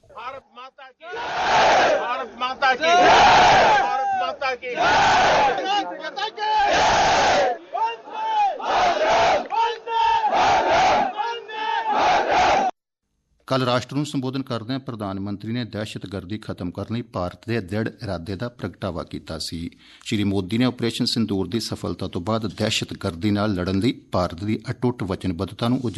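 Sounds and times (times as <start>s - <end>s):
crowd chanting a slogan to raise soldiers' spirits: 1.0s - 12.7s
speech: 13.6s - 25.9s.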